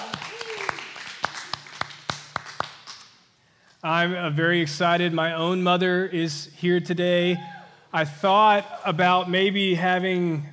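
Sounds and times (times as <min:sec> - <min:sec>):
audience applause: 0:00.0 - 0:03.0
speech: 0:03.8 - 0:10.5.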